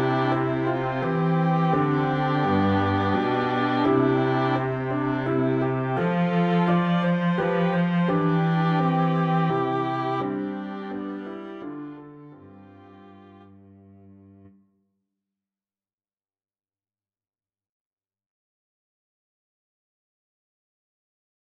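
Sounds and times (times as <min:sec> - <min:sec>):
low musical accompaniment: 0:00.0 - 0:14.6.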